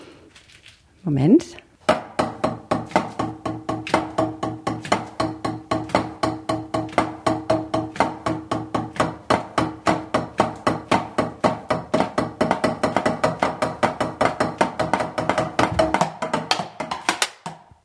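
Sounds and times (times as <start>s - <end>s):
speech: 1.0s - 1.7s
drumming on an electronic drum kit: 1.9s - 17.7s.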